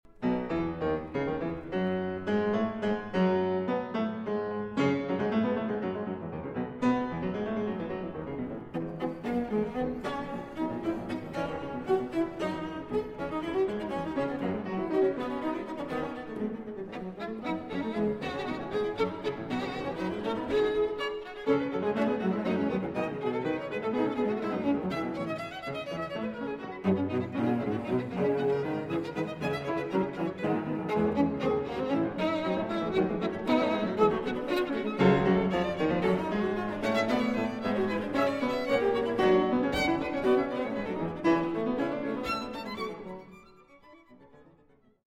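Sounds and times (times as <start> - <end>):
piano trio in A minor: 0.1 - 43.1.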